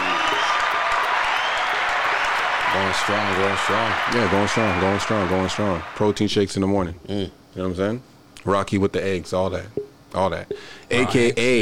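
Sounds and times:
crowd clapping: 0.0s - 6.2s
speech: 2.8s - 11.6s.

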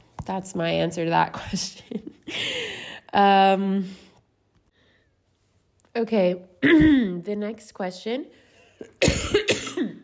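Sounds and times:
speech: 0.3s - 4.0s, 6.0s - 9.4s
person coughing after water went down wrong: 6.6s - 7.2s, 8.8s - 10.0s.

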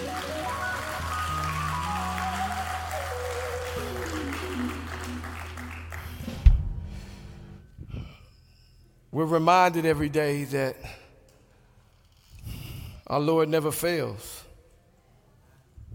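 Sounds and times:
audience hand clapping: 0.0s - 6.4s
speech: 9.2s - 11.0s, 13.1s - 14.4s.

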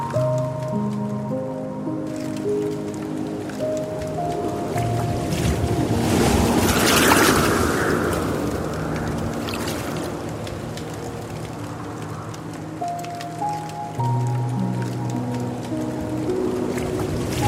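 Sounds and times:
soft piano chords: 0.0s - 17.4s
waterfall water: 0.0s - 17.4s.

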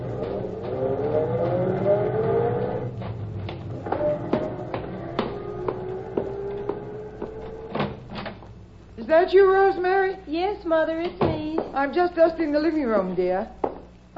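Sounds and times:
car driving past: 0.0s - 7.8s
speech: 9.1s - 13.6s.

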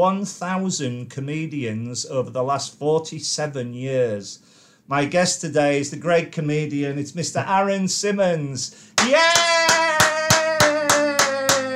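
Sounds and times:
speech: 0.0s - 9.8s
one person clapping enthusiastically: 9.0s - 11.7s.

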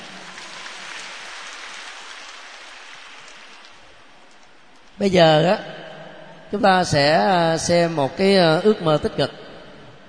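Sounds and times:
group applauding: 0.0s - 4.3s
speech: 5.0s - 5.8s, 6.5s - 9.4s.

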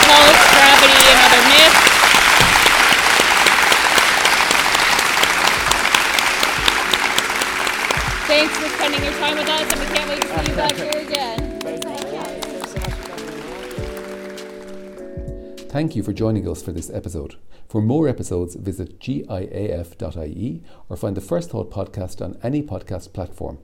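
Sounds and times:
audience applause for the company: 0.0s - 15.0s
speech: 15.8s - 23.6s.

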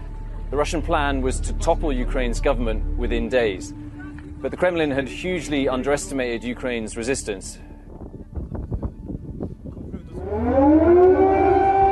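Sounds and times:
speech: 0.5s - 7.6s
air raid siren wailing: 10.1s - 11.9s.

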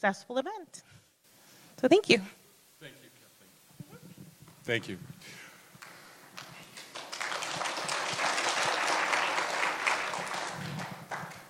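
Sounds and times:
speech: 0.0s - 1.0s, 1.8s - 3.0s, 4.7s - 5.4s
audience clapping: 5.7s - 11.4s.

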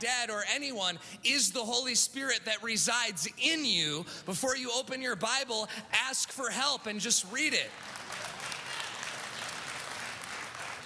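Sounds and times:
speech: 0.0s - 8.0s
audience applause: 7.7s - 10.8s.

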